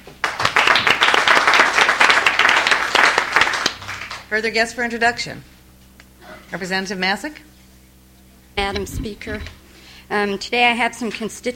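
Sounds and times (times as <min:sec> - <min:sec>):
legislators in a state house chamber applauding: 0:00.2 - 0:04.3
speech: 0:04.3 - 0:05.5, 0:06.5 - 0:07.5, 0:08.6 - 0:11.5.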